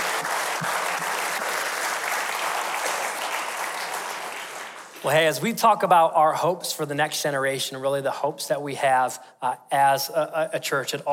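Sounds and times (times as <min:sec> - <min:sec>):
audience applause: 0:00.0 - 0:05.1
speech: 0:05.0 - 0:11.1.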